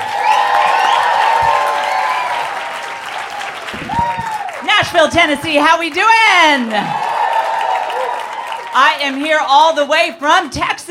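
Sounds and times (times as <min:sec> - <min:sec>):
comedy-show audience applause in Nashville: 0:00.0 - 0:05.1, 0:05.9 - 0:09.4
comedy-show audience cheering in Nashville: 0:00.0 - 0:09.4
speech: 0:05.0 - 0:07.0, 0:08.8 - 0:10.9.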